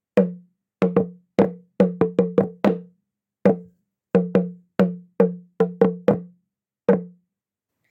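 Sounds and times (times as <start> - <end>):
drum: 0.2 - 2.9, 3.5 - 6.3, 6.9 - 7.2.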